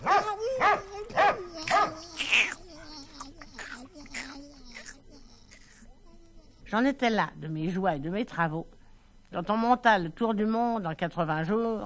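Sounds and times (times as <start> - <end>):
person imitating a dog barking with woofs and yips: 0.0 - 6.6
speech: 6.7 - 11.8.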